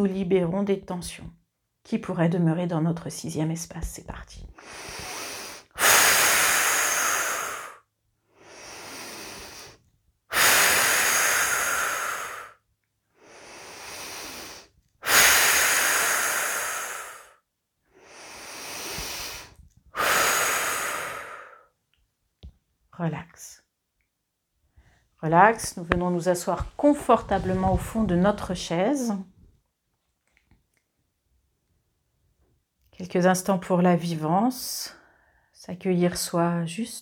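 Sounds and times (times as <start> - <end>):
speech: 0.0 - 5.1, 23.0 - 23.2, 25.2 - 29.3, 33.0 - 35.0, 35.6 - 37.0
slow deep breathing during relaxation exercise: 4.6 - 12.6, 13.2 - 21.7.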